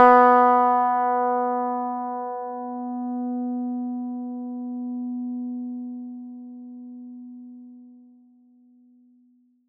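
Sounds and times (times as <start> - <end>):
plucked electric guitar note B3: 0.0 - 4.8.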